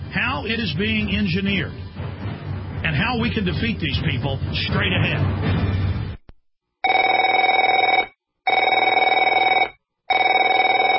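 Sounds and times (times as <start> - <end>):
speech: 0.1 - 1.9, 2.8 - 5.8
telephone ringing: 6.8 - 10.9.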